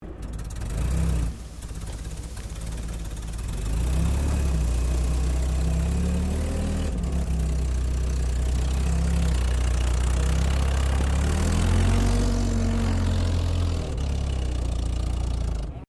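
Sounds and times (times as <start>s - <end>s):
Daimler Ferret British scout car engine starting: 0.0s - 15.8s.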